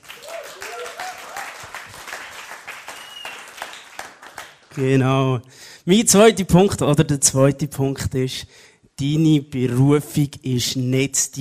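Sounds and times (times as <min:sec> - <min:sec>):
crowd whooping: 0:00.0 - 0:03.8
audience clapping: 0:00.0 - 0:05.0
speech: 0:04.8 - 0:11.3.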